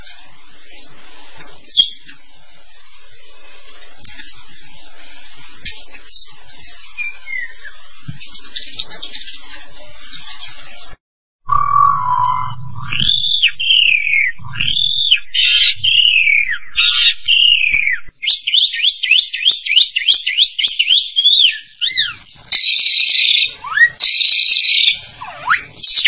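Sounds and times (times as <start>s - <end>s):
starling singing: 1.7s - 2.1s, 5.6s - 9.4s, 11.5s - 26.0s
low hum: 11.5s - 18.1s.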